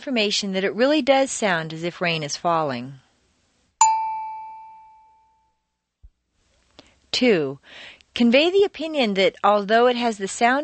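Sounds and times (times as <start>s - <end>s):
speech: 0.0s - 3.0s, 7.2s - 10.6s
prompt tone signalling time to speak: 3.8s - 5.4s.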